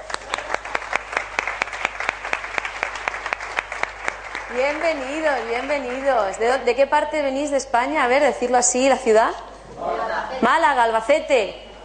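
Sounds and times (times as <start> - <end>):
audience applause: 0.0 - 6.6
speech: 4.5 - 11.6.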